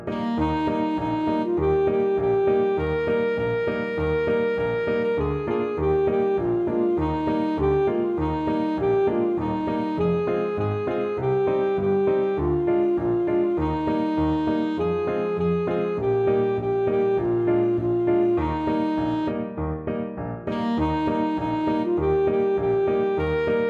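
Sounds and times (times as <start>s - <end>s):
alto saxophone: 0.1s - 19.8s, 20.5s - 23.6s.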